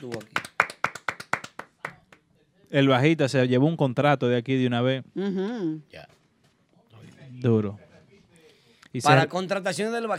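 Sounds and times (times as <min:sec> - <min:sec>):
speech: 0:00.0 - 0:00.4, 0:02.7 - 0:06.2, 0:07.4 - 0:07.8, 0:08.9 - 0:10.1
applause, people clapping: 0:00.0 - 0:02.3.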